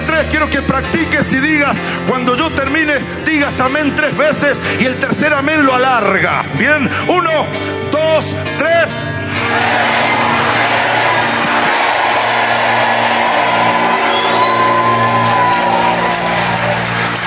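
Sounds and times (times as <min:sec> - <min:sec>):
speech: 0:00.2 - 0:10.0
audience applauding: 0:09.4 - 0:17.2.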